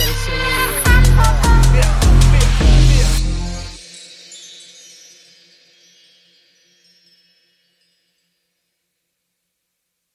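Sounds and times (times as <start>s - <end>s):
trap music beat: 0.0s - 3.8s.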